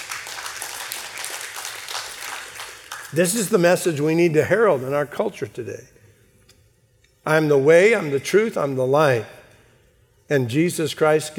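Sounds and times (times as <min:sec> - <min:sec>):
audience applause: 0:00.0 - 0:03.2
speech: 0:03.1 - 0:05.9, 0:07.2 - 0:09.4, 0:10.3 - 0:11.3.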